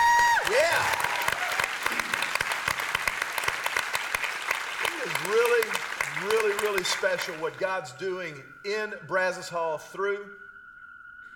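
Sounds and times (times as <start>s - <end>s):
church congregation applauding at Lake Hills Church at Brazos Hall: 0.0s - 8.4s
speech: 6.8s - 10.4s.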